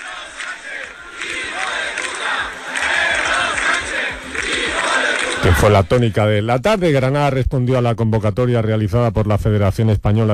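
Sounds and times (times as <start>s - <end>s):
protest crowd shouting slogans: 0.0s - 5.9s
speech: 5.6s - 10.3s.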